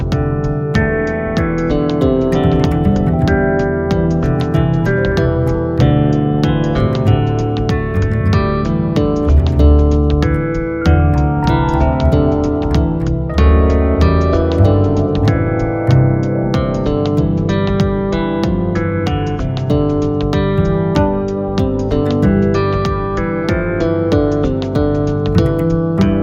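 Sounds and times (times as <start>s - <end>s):
bass music: 0.0s - 26.2s.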